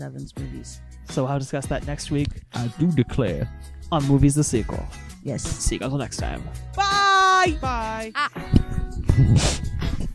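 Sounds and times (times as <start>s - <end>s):
speech: 0.0s - 9.8s
person sniffing: 9.2s - 9.8s.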